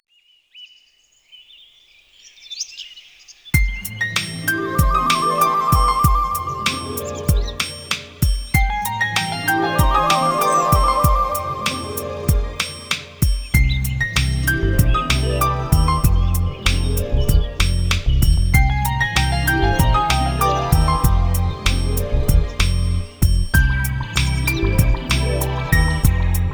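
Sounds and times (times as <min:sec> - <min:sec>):
nature sounds: 0:00.0 - 0:26.5.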